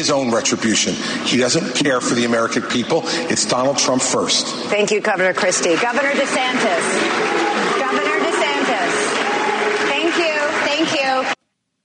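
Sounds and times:
speech: 0.0s - 9.2s
audience applause: 5.3s - 11.4s
chorus of boos from the audience: 5.4s - 11.4s.

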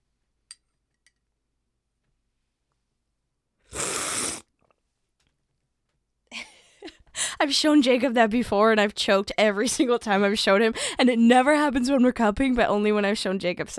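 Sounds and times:
loud slurping of coffee during a coffee cupping: 3.7s - 4.5s
speech: 7.4s - 13.7s.

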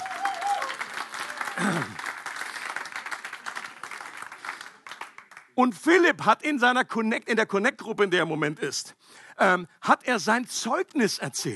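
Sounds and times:
audience applause: 0.0s - 5.6s
speech: 5.6s - 11.5s.

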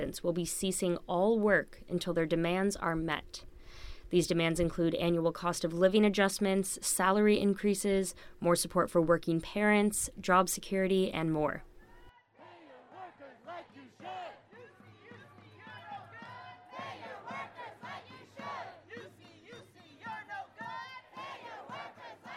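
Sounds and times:
speech: 0.0s - 11.7s
rally crowd chanting for equal wages: 11.9s - 22.3s.

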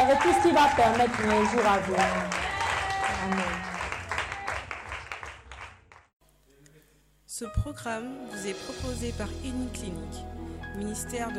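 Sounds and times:
congregation applauding during a church healing ministry service: 0.0s - 6.1s
speech: 0.1s - 2.4s, 3.2s - 3.7s, 7.4s - 11.3s.

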